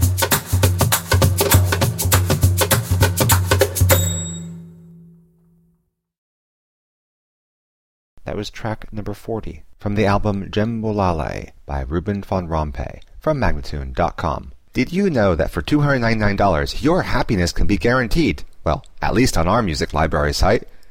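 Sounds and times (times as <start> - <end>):
fast darbuka second line rhythm: 0.0 - 4.6
person speaking: 8.2 - 20.7.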